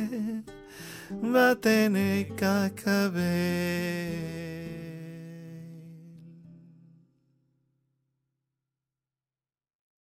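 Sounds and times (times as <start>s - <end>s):
tenor singing: 0.0s - 6.5s.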